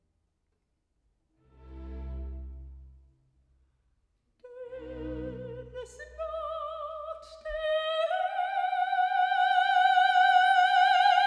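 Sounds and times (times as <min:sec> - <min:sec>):
soprano singing recitative: 0:04.4 - 0:11.2.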